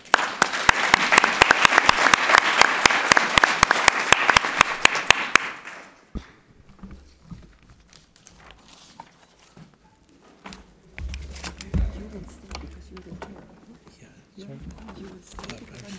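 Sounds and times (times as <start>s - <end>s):
audience applause for panel speakers: 0.0s - 6.0s.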